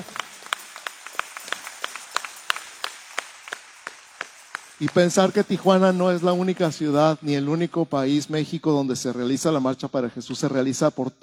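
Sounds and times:
audience applause: 0:00.0 - 0:07.0
speech: 0:04.8 - 0:11.2.

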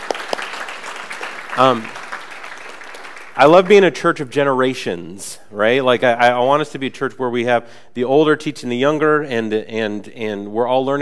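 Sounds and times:
audience applause: 0:00.0 - 0:03.8
speech: 0:01.6 - 0:02.0, 0:03.4 - 0:11.0.

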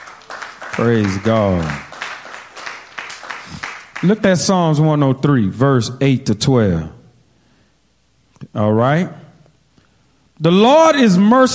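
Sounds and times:
audience clapping: 0:00.0 - 0:04.6
speech: 0:00.8 - 0:01.8, 0:04.0 - 0:07.0, 0:08.5 - 0:09.2, 0:10.4 - 0:11.5.

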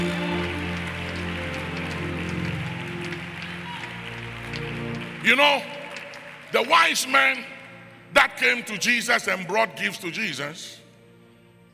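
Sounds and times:
audience clapping: 0:00.0 - 0:08.6
speech: 0:05.2 - 0:05.8, 0:06.5 - 0:07.5, 0:08.1 - 0:10.8.

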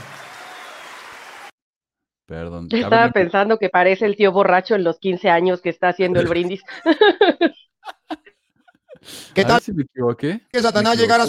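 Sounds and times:
crowd applause: 0:00.0 - 0:01.5
speech: 0:02.3 - 0:07.6, 0:09.0 - 0:11.2
laughter: 0:02.8 - 0:03.3, 0:06.1 - 0:09.8.

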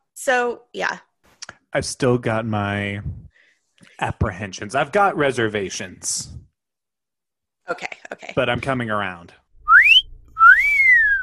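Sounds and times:
speech: 0:00.2 - 0:01.1, 0:01.7 - 0:03.2, 0:04.0 - 0:06.4, 0:07.7 - 0:09.4
wolf whistle catcall: 0:09.7 - 0:11.2.

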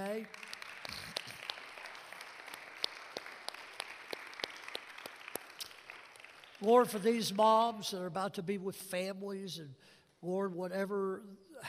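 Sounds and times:
audience clapping: 0:00.0 - 0:07.4
speech: 0:06.6 - 0:11.6.

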